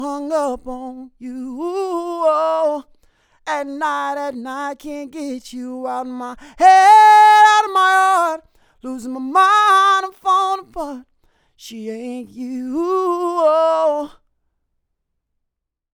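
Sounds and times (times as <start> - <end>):
male vocals recorded with FET microphone: 0.0 - 14.2.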